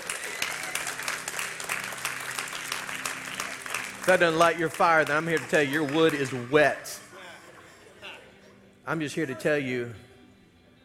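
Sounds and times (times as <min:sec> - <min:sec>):
audience hand clapping: 0:00.0 - 0:07.1
speech: 0:04.0 - 0:07.0, 0:08.9 - 0:10.1.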